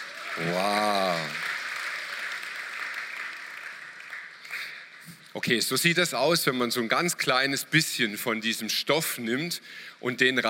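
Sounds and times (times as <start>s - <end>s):
audience applause: 0.0s - 5.1s
speech: 0.4s - 1.4s, 5.4s - 10.4s.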